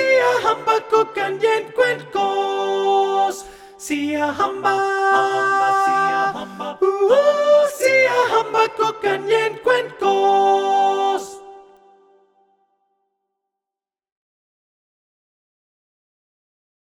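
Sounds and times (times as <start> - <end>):
soprano singing: 0.0 - 12.0.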